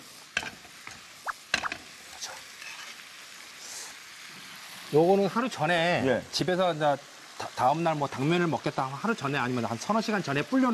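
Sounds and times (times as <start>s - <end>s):
chives and mushrooms sizzling in a pan: 0.0s - 10.7s
utensil scraping a pan: 2.6s - 3.0s
speech: 4.9s - 10.7s.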